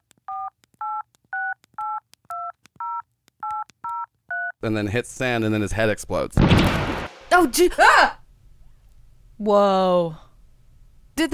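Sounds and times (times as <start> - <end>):
phone keypad buttons being pressed with two-tone beeps: 0.3 - 4.6
speech: 4.6 - 8.2, 9.4 - 10.2, 11.2 - 11.3.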